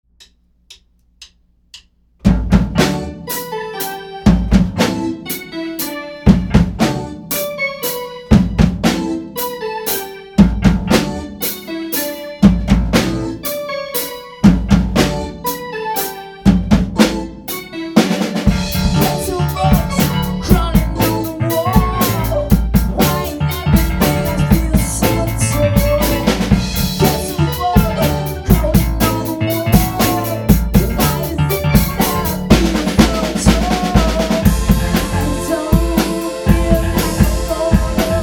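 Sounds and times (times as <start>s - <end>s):
techno music: 2.8s - 38.2s.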